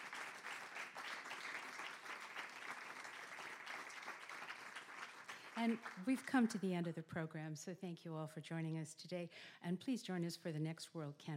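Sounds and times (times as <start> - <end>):
audience applause at a live World Canvass event: 0.0 - 6.4
speech: 5.6 - 11.3.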